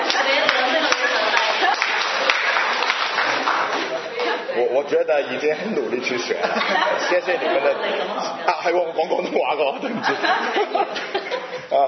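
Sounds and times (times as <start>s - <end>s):
laughter: 0.0s - 2.8s, 5.6s - 11.8s
audience clapping: 0.0s - 4.4s
speech: 4.8s - 11.8s.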